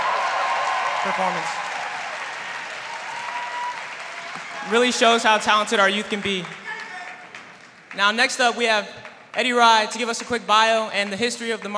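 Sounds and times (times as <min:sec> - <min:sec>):
audience applause: 0:00.0 - 0:08.0
speech: 0:01.0 - 0:01.7, 0:04.6 - 0:06.6, 0:07.9 - 0:11.7.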